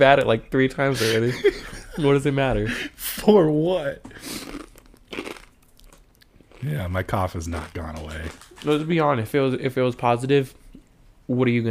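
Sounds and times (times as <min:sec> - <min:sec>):
speech: 0:00.0 - 0:04.6, 0:06.6 - 0:10.6, 0:11.3 - 0:11.6
crunching Dorito tortilla chips: 0:04.3 - 0:09.0.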